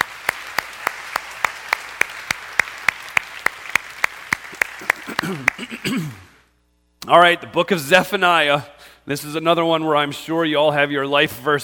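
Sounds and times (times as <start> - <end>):
audience clapping in unison: 0.0 - 6.4
speech: 5.3 - 6.2, 7.1 - 11.6.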